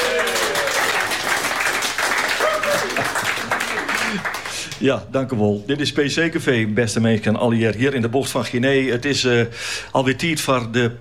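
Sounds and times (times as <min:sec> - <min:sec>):
voices and whoops: 0:00.0 - 0:01.0, 0:02.3 - 0:03.1
studio audience applause: 0:00.0 - 0:04.7
speech: 0:04.8 - 0:11.0.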